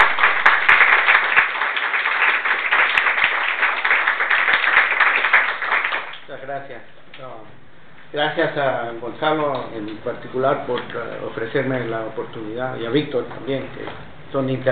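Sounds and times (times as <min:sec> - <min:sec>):
audience applause welcoming a speaker: 0:00.0 - 0:06.2
speech: 0:06.6 - 0:14.6.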